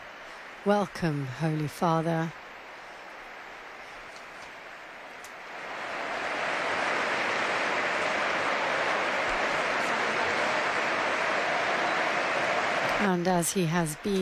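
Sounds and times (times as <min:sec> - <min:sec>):
speech: 0:00.6 - 0:02.4, 0:13.0 - 0:14.2
sustained applause from a large crowd: 0:05.4 - 0:14.2.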